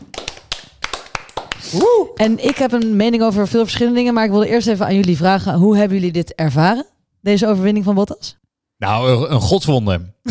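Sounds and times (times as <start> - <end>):
sparse uneven hand claps: 0.0 - 3.0
loud rising-and-falling whoop: 1.6 - 2.2
speech: 1.7 - 10.2.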